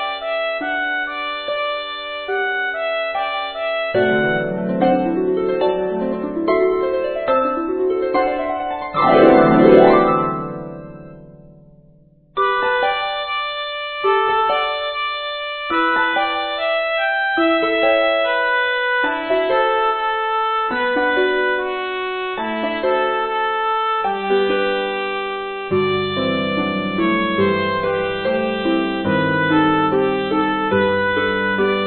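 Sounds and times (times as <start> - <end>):
C trumpet: 0.0 - 6.4, 12.4 - 31.8
two harps: 2.3 - 19.9, 25.7 - 31.8.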